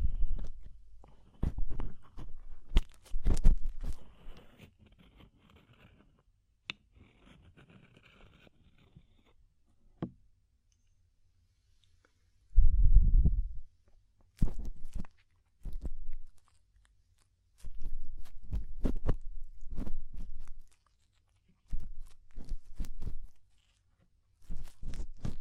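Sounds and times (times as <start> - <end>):
deep ear cleaning crackling crunching clicks: 0.0 - 5.6, 14.2 - 25.3
low rumbling scrapes: 12.6 - 13.6.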